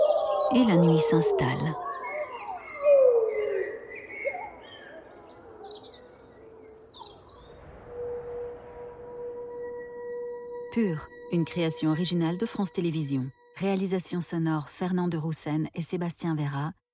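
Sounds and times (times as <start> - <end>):
animal howls rising from the treetops: 0.0 - 12.4
speech: 0.5 - 1.9, 10.8 - 16.8.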